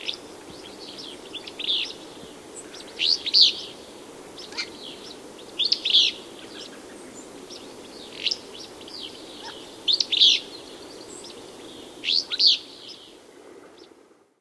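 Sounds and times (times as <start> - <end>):
Willow Flycatcher calling in North America: 0.0 - 13.1.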